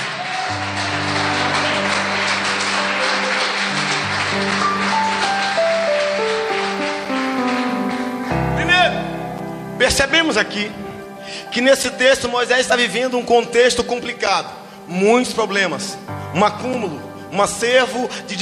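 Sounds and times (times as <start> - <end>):
audience applause: 0.0 - 9.6
speech: 10.3 - 10.9, 11.5 - 18.4.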